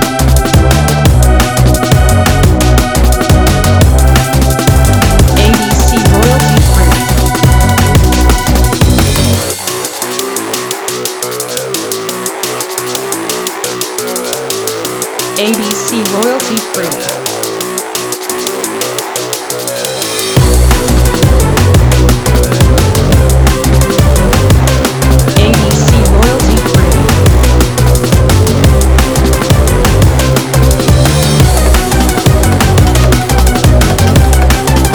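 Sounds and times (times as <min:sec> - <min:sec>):
drum and bass music: 0:00.0 - 0:34.9.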